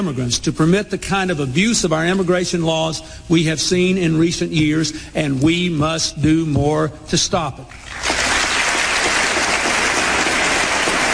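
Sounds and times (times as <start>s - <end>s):
speech: 0.0s - 8.2s
applause from Republicans and Democrats: 7.8s - 11.1s.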